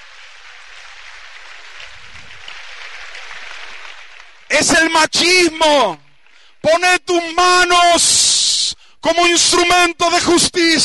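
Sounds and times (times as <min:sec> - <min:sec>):
crowd of women applauding: 0:00.0 - 0:06.6
speech: 0:04.6 - 0:06.0, 0:06.6 - 0:10.8.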